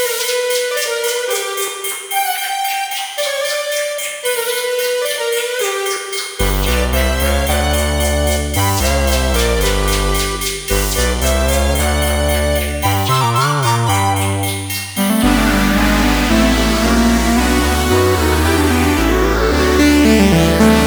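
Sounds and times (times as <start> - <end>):
synth expander module playing: 0.0 - 20.8.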